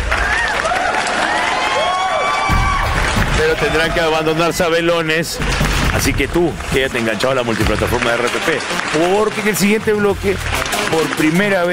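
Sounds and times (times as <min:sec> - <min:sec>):
whistles and cheers: 0:00.0 - 0:04.8
audience applause: 0:00.0 - 0:11.7
speech: 0:03.5 - 0:11.7.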